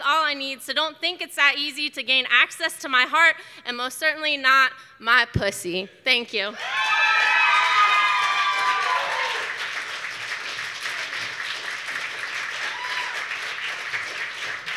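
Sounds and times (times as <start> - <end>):
speech: 0.3 - 6.9
audience whooping and cheering: 6.6 - 10.0, 12.0 - 14.7
audience clapping: 6.6 - 14.7.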